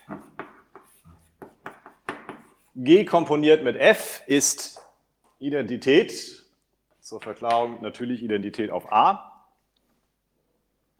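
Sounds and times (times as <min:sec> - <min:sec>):
handwriting during a math proof explanation: 0:00.0 - 0:02.8
speech: 0:02.8 - 0:04.8, 0:05.4 - 0:06.4, 0:07.1 - 0:09.3.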